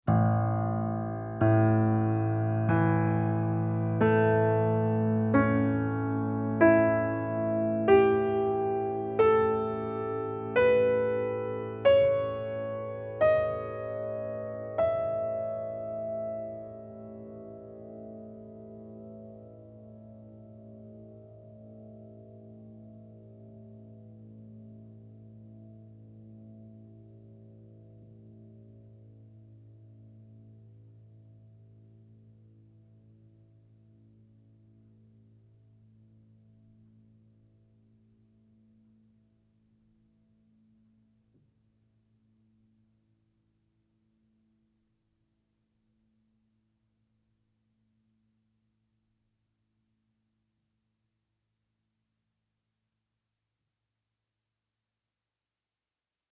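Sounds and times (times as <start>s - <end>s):
piano tone: 0.0s - 41.6s.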